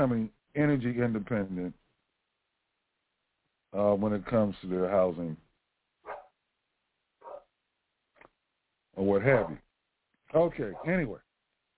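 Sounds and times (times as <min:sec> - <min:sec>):
speech: 0:00.0 - 0:01.8, 0:03.7 - 0:05.4, 0:09.0 - 0:09.6, 0:10.3 - 0:11.2
dog barking in the background: 0:06.0 - 0:06.4, 0:07.2 - 0:07.5, 0:09.3 - 0:09.6, 0:10.7 - 0:11.0.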